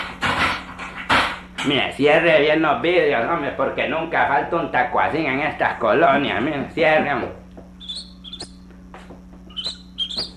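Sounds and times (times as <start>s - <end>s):
speech: 1.6s - 7.4s
crickets chirping: 3.5s - 10.3s.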